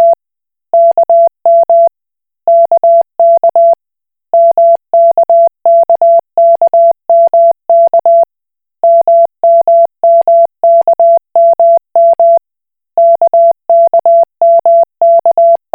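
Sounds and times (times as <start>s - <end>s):
Koch Morse code beeps: 0.8s - 1.9s, 2.5s - 3.8s, 4.4s - 8.2s, 8.8s - 12.4s, 13.0s - 15.7s.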